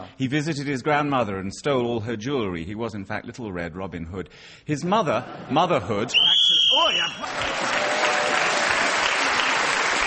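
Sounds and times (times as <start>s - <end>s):
speech: 0.0s - 6.4s
referee's whistle ending a round: 6.1s - 7.2s
applause: 7.2s - 10.0s.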